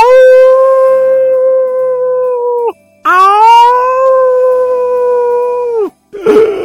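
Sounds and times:
narrator imitating wolf howls: 0:00.0 - 0:06.6.

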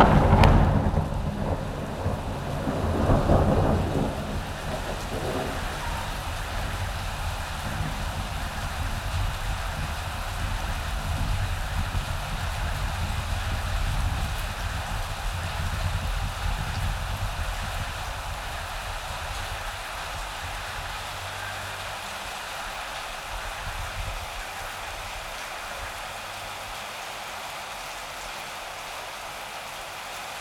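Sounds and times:
low thunder rumble: 0:00.0 - 0:18.5
summer thunderstorm rain falling: 0:00.0 - 0:30.4.

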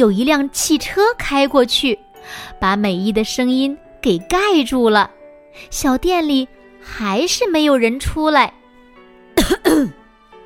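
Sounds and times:
speech: 0:00.0 - 0:08.6, 0:09.4 - 0:10.0
person coughing: 0:09.4 - 0:10.0.

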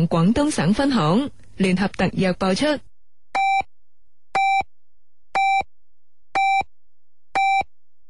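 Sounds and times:
speech: 0:00.0 - 0:02.9
radio hourly time signal beeps: 0:03.4 - 0:03.7, 0:04.4 - 0:04.7, 0:05.4 - 0:05.7, 0:06.4 - 0:06.7, 0:07.4 - 0:07.7.

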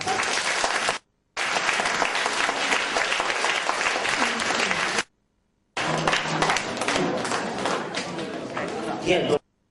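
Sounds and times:
audience applause: 0:00.0 - 0:05.1, 0:05.8 - 0:07.8
speech: 0:09.1 - 0:09.4.

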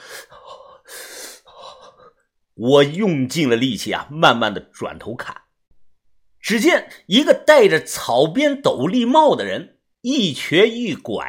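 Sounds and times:
heavy gasping for breath from someone shot and lying on the ground: 0:00.0 - 0:02.2
speech: 0:02.6 - 0:05.4, 0:06.5 - 0:11.2.

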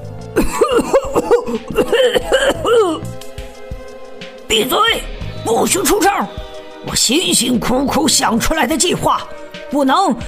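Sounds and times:
harsh throaty coughing fit: 0:00.4 - 0:03.2
speech: 0:04.5 - 0:10.2.

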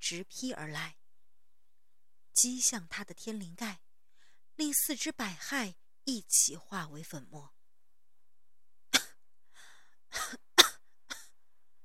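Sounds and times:
speech: 0:00.1 - 0:01.0, 0:02.4 - 0:03.8, 0:04.6 - 0:07.6
woman coughing violently: 0:10.2 - 0:11.3.

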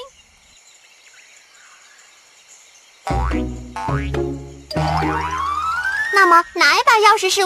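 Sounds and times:
springy cartoon boings: 0:03.1 - 0:06.3
speech: 0:03.3 - 0:05.3, 0:06.2 - 0:07.4.

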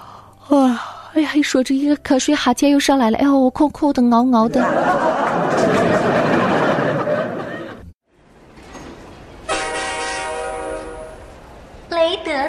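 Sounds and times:
speech: 0:00.5 - 0:05.8
laughter: 0:04.5 - 0:08.0
train rumbling: 0:08.2 - 0:11.9
train horn: 0:09.5 - 0:11.3.

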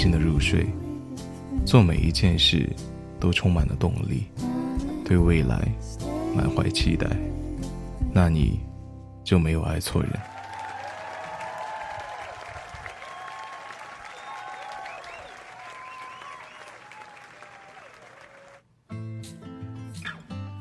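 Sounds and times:
speech: 0:00.0 - 0:00.9, 0:01.6 - 0:04.5, 0:05.1 - 0:07.4, 0:08.2 - 0:08.7, 0:09.3 - 0:10.3
music: 0:00.0 - 0:10.2, 0:18.9 - 0:20.5
audience applause: 0:10.2 - 0:18.6
high-pitched whoops: 0:10.2 - 0:18.6.

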